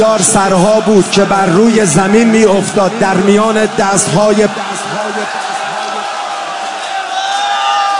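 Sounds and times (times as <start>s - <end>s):
speech: 0.0s - 5.4s
crowd shouting at a mourning gathering: 2.8s - 7.9s.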